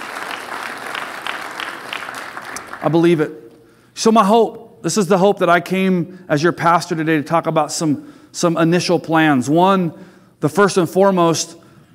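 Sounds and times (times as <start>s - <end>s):
crowd applause: 0.0s - 3.0s
speech: 2.8s - 3.4s, 4.0s - 11.6s.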